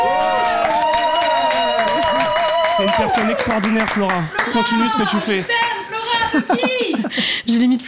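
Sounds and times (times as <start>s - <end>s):
studio group applauding: 0.0s - 6.2s
speech: 2.8s - 5.6s, 6.3s - 7.8s
laughter: 4.3s - 7.4s.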